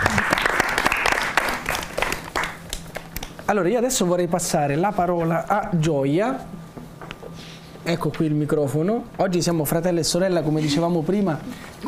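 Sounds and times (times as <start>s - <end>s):
audience applause: 0.0s - 3.3s
speech: 3.5s - 6.6s, 7.9s - 11.8s.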